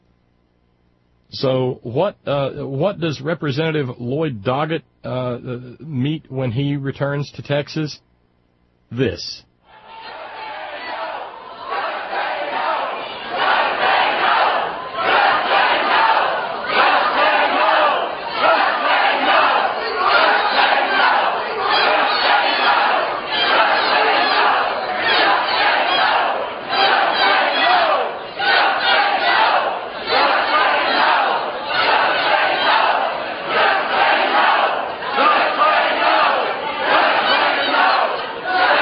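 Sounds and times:
speech: 1.3 - 8.1, 8.9 - 9.5
angry crowd screaming and hollering: 9.7 - 38.8.

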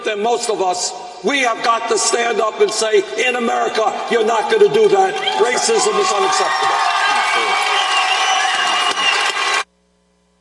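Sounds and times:
speech: 0.1 - 7.8
audience cheering: 4.1 - 9.7.

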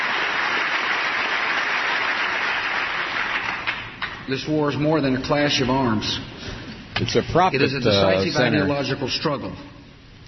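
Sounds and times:
crowd applause: 0.0 - 4.0
speech: 4.3 - 6.3, 7.0 - 9.7.

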